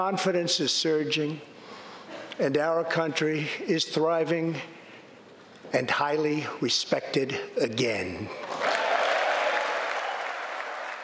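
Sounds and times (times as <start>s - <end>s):
speech: 0.0s - 1.5s, 2.4s - 4.8s, 5.7s - 8.6s
audience applause: 8.6s - 11.0s.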